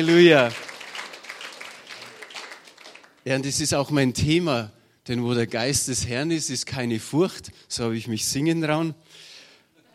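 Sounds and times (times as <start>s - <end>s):
speech: 0.0s - 0.6s, 3.2s - 9.3s
audience applause: 0.0s - 3.3s.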